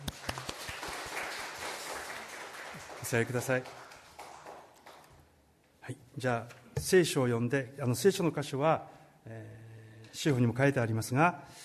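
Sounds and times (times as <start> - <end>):
church congregation clapping to congratulate a child: 0.0 - 5.4
speech: 3.1 - 3.8, 5.9 - 9.6, 10.2 - 11.6.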